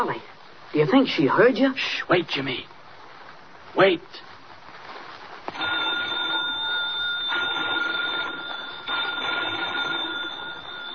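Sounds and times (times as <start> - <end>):
speech: 0.0 - 2.7, 3.7 - 4.3
telephone bell ringing urgently: 5.5 - 10.9.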